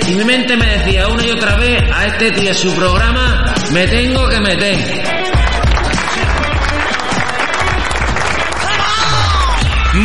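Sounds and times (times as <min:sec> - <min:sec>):
speech: 0:00.1 - 0:05.2
applause: 0:05.4 - 0:10.0.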